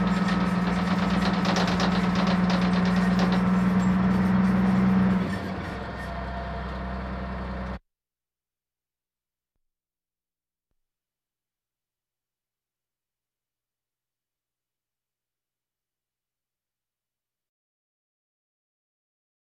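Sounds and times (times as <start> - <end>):
military vehicles: 0.0 - 7.8.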